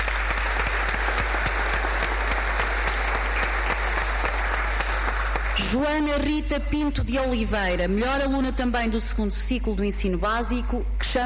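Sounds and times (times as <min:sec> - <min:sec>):
audience applause: 0:00.0 - 0:05.7
speech: 0:05.7 - 0:11.2.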